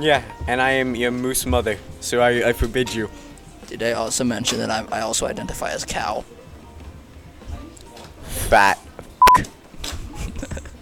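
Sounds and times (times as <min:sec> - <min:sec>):
speech: 0:00.0 - 0:06.4, 0:08.5 - 0:08.8
censor bleep: 0:09.2 - 0:09.4.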